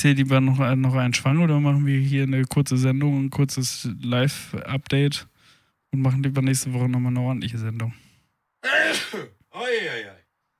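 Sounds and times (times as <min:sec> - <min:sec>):
speech: 0:00.0 - 0:05.3, 0:05.9 - 0:08.0, 0:08.6 - 0:10.1
person sneezing: 0:08.6 - 0:10.1.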